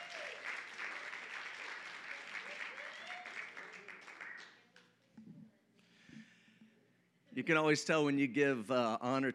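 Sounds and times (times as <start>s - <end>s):
shouts and whoops: 0.0s - 0.5s, 2.4s - 3.5s
loud sustained audience applause: 0.0s - 4.5s
speech: 7.4s - 9.3s.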